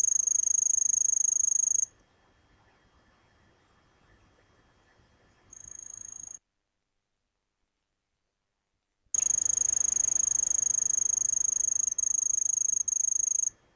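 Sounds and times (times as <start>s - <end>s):
Grass lark song: 0.0s - 6.4s, 9.2s - 13.6s.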